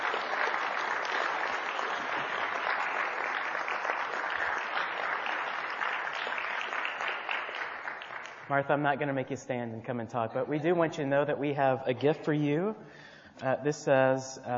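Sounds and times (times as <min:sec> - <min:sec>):
crowd clapping in sustained applause: 0:00.0 - 0:08.6
speech: 0:08.5 - 0:14.5.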